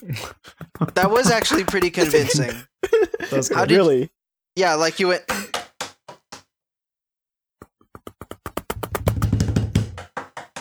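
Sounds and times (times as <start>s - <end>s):
laughter: 0.0s - 4.1s
speech: 0.0s - 5.4s
hands slapping a desk: 0.6s - 2.4s, 7.6s - 10.5s.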